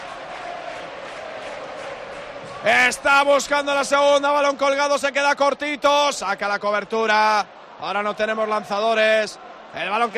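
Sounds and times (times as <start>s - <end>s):
football stadium crowd roaring during a match involving Alavés: 0.0s - 10.1s
speech: 2.6s - 10.1s.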